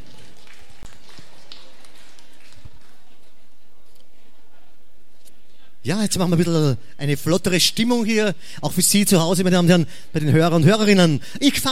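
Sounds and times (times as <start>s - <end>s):
audience applause: 0.0s - 3.4s
speech: 5.8s - 11.6s.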